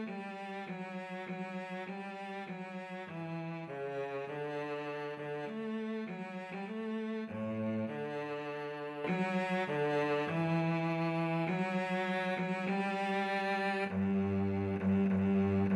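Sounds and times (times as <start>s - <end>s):
violin and cello duet playing an overture: 0.0s - 15.7s.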